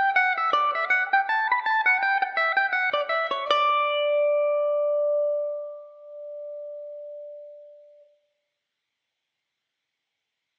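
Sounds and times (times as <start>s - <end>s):
mandolin playing a reel in D major: 0.0s - 7.9s.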